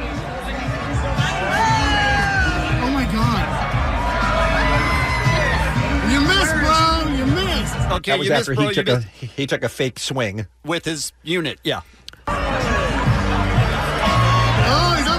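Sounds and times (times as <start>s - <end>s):
golf crowd murmuring and chattering outdoors: 0.0s - 9.1s, 12.2s - 15.1s
people whooping: 1.2s - 6.7s, 12.4s - 15.1s
speech: 8.0s - 12.4s.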